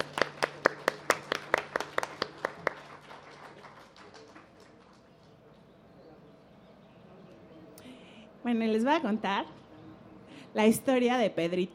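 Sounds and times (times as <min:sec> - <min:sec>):
audience applauding: 0:00.0 - 0:05.4
speech: 0:08.5 - 0:09.6, 0:10.6 - 0:11.7.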